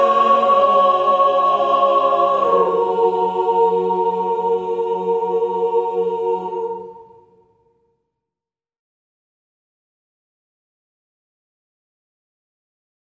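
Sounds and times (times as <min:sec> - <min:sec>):
youth choir singing Latin sacred piece: 0:00.0 - 0:07.4.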